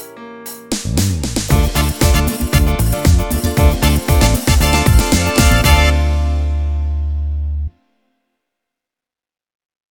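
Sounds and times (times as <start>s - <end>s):
disco music: 0.7s - 7.7s.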